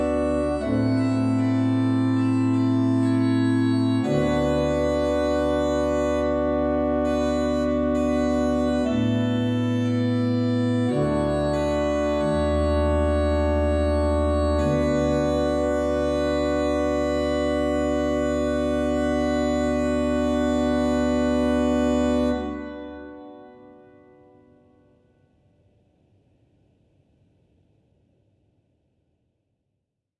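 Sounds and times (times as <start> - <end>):
organ playing: 0.0 - 23.8.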